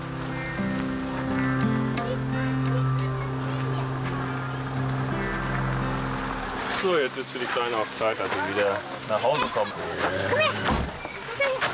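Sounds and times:
car arriving with engine humming: 0.0s - 11.5s
speech: 6.8s - 10.8s.

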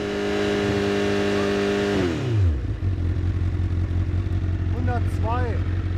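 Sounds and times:
car engine revving to 6000 rpm: 0.0s - 5.9s.

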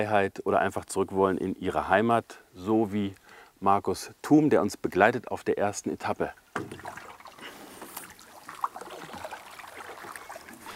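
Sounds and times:
speech: 0.0s - 7.1s
water flowing in a brook while boating: 6.3s - 10.7s
small splashes: 6.4s - 10.7s.

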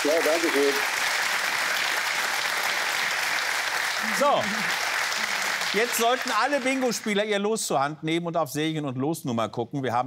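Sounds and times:
speech: 0.0s - 1.1s, 4.0s - 4.8s, 5.7s - 10.0s
audience applause on a bingo show: 0.0s - 7.3s.

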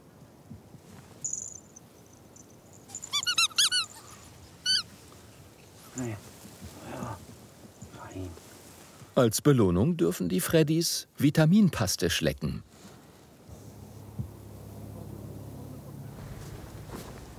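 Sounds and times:
squeaky walrus toy squeaking: 2.9s - 4.9s
speech: 6.0s - 6.3s, 9.2s - 12.7s.

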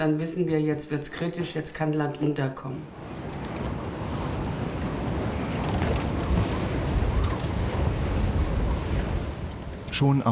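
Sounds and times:
speech: 0.0s - 3.2s, 10.0s - 10.2s
storm wind at the North Sea: 2.9s - 10.0s
surf washing: 2.9s - 10.2s.

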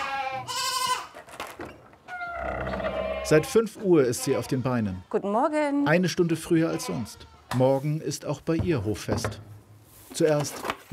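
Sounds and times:
goats bleating: 0.0s - 1.2s, 2.3s - 5.3s, 6.4s - 7.5s
speech: 3.3s - 9.5s, 10.1s - 10.9s.

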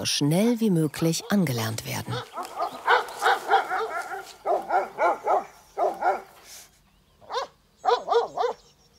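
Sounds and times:
speech: 0.0s - 2.4s
livestock guardian dogs barking: 1.1s - 6.4s, 7.2s - 8.7s.

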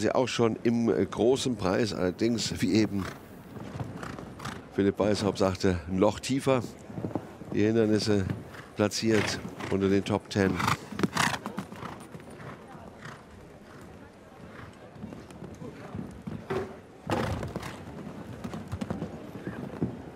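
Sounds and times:
speech: 0.0s - 3.2s, 4.8s - 10.8s
horse galloping and jumping: 2.8s - 4.8s, 6.9s - 20.1s.

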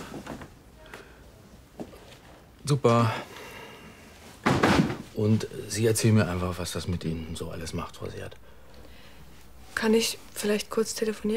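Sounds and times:
speech: 2.7s - 3.3s, 5.2s - 8.6s, 9.8s - 11.3s
door being closed: 4.4s - 5.1s.

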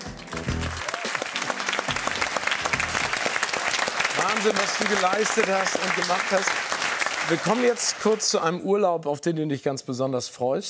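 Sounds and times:
audience applause and cheering: 0.0s - 8.6s
speech: 4.4s - 10.6s.

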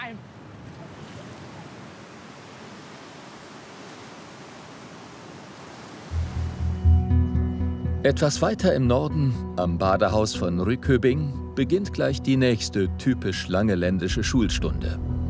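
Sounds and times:
surf washing ashore: 0.0s - 6.9s
speech: 8.0s - 15.0s.

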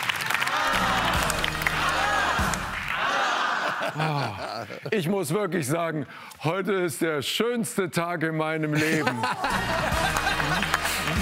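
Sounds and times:
applause: 0.0s - 3.3s, 9.5s - 11.1s
laughter: 3.0s - 5.1s, 8.7s - 11.1s
speech: 4.0s - 11.1s.

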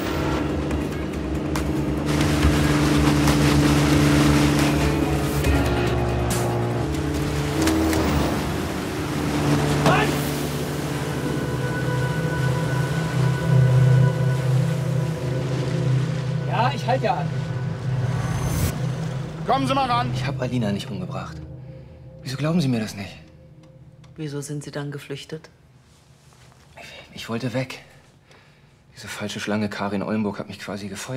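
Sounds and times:
water splashing and wash noise: 0.0s - 23.3s
motorboat engine droning on the water: 0.0s - 24.3s
speech: 19.6s - 21.5s, 22.2s - 23.2s, 24.2s - 25.6s, 27.1s - 27.9s, 29.0s - 31.1s.

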